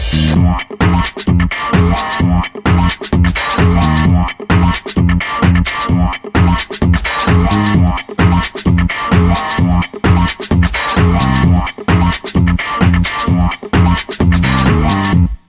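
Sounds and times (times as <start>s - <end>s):
funky ringtone: 0.2s - 15.4s.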